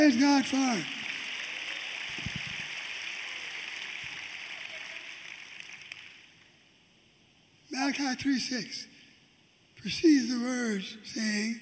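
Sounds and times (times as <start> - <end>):
speech: 0.0 - 1.0, 7.9 - 8.9, 9.8 - 11.6
audience clapping hands: 0.0 - 6.6.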